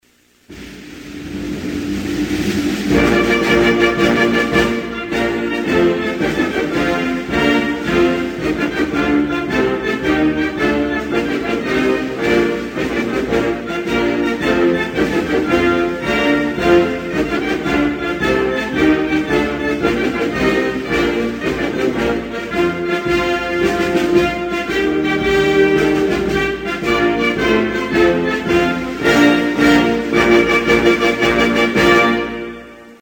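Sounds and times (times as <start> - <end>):
national anthem music: 0.4 - 32.9.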